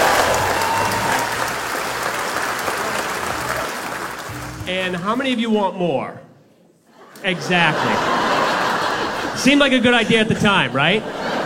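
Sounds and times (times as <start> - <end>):
audience clapping: 0.0 - 5.4
speech: 4.7 - 6.2, 7.2 - 8.1, 9.4 - 11.2
laughter: 6.9 - 11.4.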